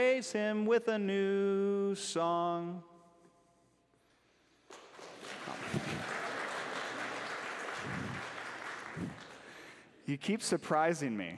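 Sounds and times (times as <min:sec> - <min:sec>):
speech: 0:00.0 - 0:02.9, 0:10.1 - 0:11.3
audience applause: 0:04.7 - 0:09.8.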